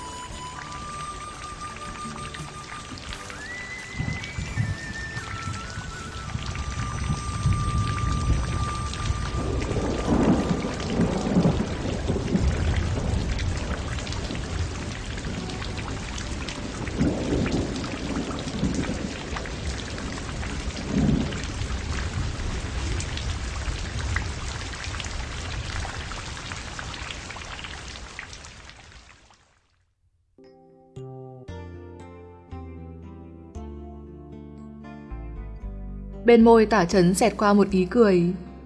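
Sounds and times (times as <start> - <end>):
raindrops falling on a bamboo curtain: 0.0 - 30.0
speech: 36.3 - 38.5.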